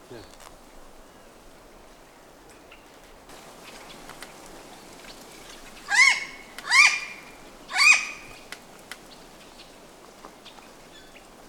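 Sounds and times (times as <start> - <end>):
faint background hiss: 0.0 - 11.4
bird squawks: 5.8 - 8.5.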